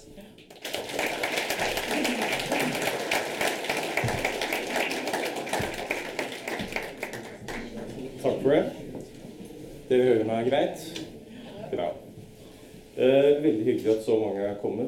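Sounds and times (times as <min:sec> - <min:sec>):
warm audience applause: 0:00.4 - 0:08.0
speech: 0:08.5 - 0:08.8, 0:09.9 - 0:11.0, 0:13.0 - 0:14.8.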